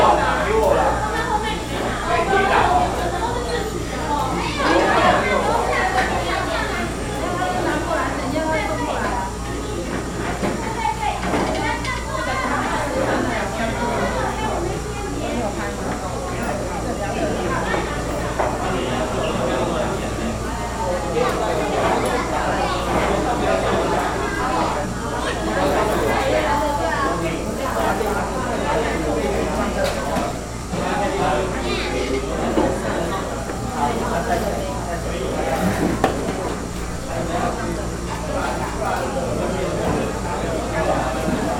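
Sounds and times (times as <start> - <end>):
compressor hum in Yingge A-Po sushi shop dining area: 0.0 - 41.5
customers chattering in a busy oden shop: 0.0 - 41.5.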